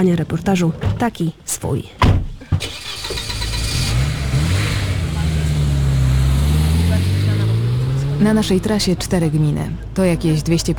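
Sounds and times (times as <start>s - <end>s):
speech: 0.0s - 2.7s, 8.2s - 10.7s
car engine starting: 2.4s - 10.7s.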